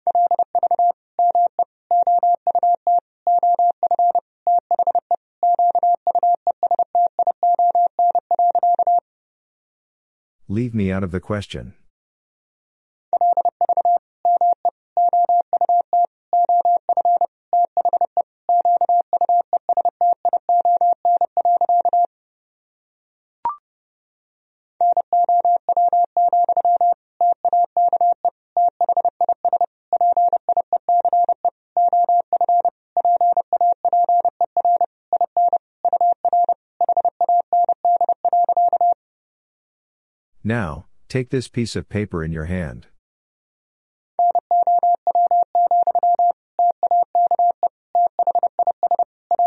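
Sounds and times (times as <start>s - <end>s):
Morse code tones at 30 wpm: 0.1s - 9.0s, 13.2s - 22.1s, 24.8s - 39.0s, 44.2s - 49.4s
speech: 10.6s - 11.8s, 40.5s - 42.9s.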